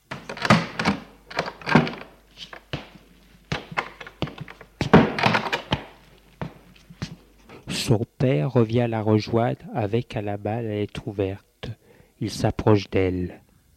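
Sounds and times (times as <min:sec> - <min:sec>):
wooden door opening with latch clicks: 0:00.1 - 0:02.8, 0:03.5 - 0:06.0
speech: 0:07.9 - 0:11.5, 0:12.2 - 0:13.4.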